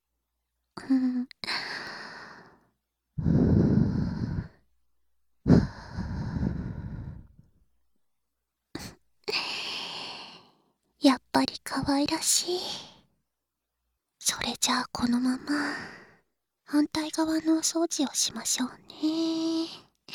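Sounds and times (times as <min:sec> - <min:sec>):
speech: 0:00.8 - 0:01.3, 0:11.4 - 0:13.0, 0:14.3 - 0:16.0, 0:16.7 - 0:20.1
soft breathy blowing into the ear during an ear-cleaning roleplay: 0:03.2 - 0:04.6, 0:05.5 - 0:07.4.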